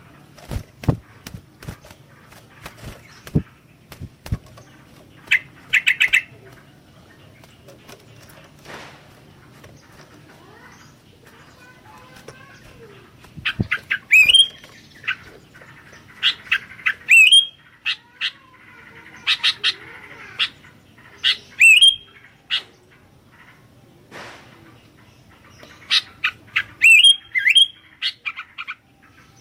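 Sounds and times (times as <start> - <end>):
sooty-headed bulbul calling: 0.5 - 6.9, 11.6 - 18.2, 21.2 - 22.8, 25.6 - 28.8.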